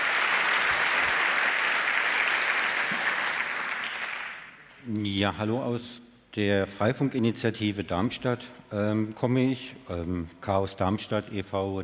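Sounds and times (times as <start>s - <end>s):
audience applause: 0.0s - 4.6s
speech: 4.9s - 11.8s.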